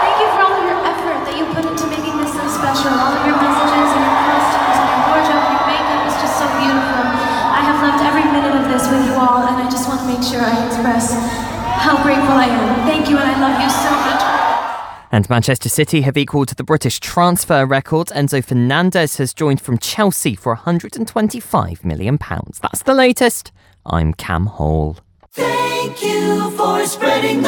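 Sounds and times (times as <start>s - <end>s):
large concert crowd cheering and screaming: 0.0s - 15.0s
speech: 15.2s - 27.4s.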